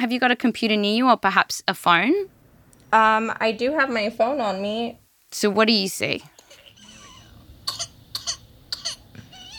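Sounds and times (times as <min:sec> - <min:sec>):
speech: 0:00.0 - 0:06.3
baby coughing with whooping cough: 0:06.5 - 0:09.5.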